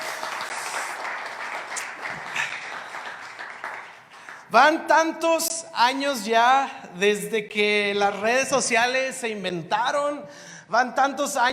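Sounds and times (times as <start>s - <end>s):
audience applause: 0.0s - 4.5s
speech: 4.5s - 11.5s.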